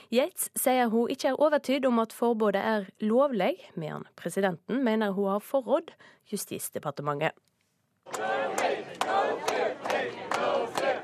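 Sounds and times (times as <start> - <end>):
speech: 0.1 - 7.5, 8.1 - 10.8
large crowd of protesters chanting slogans: 8.1 - 11.0.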